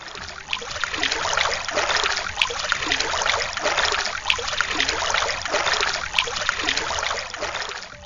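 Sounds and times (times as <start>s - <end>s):
flowing river water rushing and trickling: 0.0s - 8.0s.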